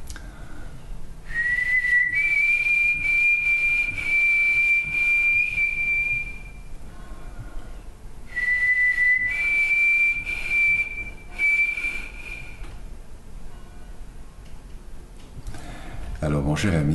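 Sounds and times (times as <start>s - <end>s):
person whistling a white-throated sparrow's song: 1.3s - 6.6s, 8.3s - 12.7s
speech: 16.3s - 16.9s.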